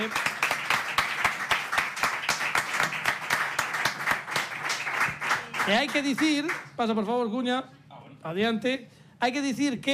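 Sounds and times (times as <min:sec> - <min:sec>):
audience applause: 0:00.0 - 0:06.6
speech: 0:05.7 - 0:09.9.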